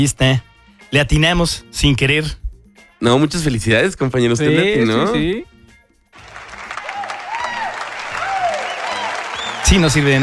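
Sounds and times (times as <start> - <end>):
speech: 0.0 - 2.4, 3.0 - 5.5, 9.7 - 10.2
applause: 6.2 - 10.2
whistling: 6.3 - 10.2.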